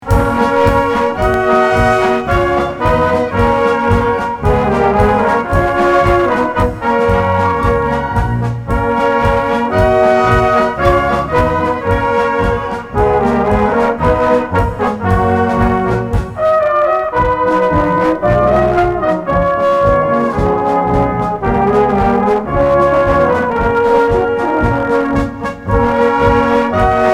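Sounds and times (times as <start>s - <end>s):
brass band music: 0.0s - 27.1s.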